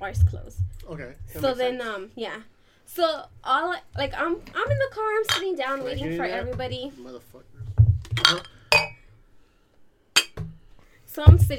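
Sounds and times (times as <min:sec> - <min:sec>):
speech: 0:00.0 - 0:07.5, 0:08.2 - 0:08.6, 0:11.2 - 0:11.5
glasses clinking in a toast: 0:05.3 - 0:05.5, 0:08.1 - 0:09.1, 0:10.2 - 0:10.5.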